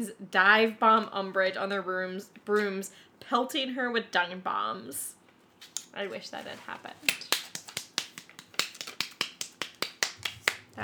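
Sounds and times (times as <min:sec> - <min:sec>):
speech: 0:00.0 - 0:05.2, 0:06.0 - 0:07.3
hand claps: 0:07.0 - 0:10.8.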